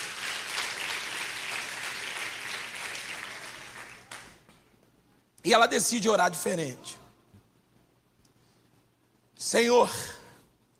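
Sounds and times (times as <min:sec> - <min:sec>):
audience applause: 0:00.0 - 0:04.4
speech: 0:05.4 - 0:07.0, 0:09.5 - 0:10.2.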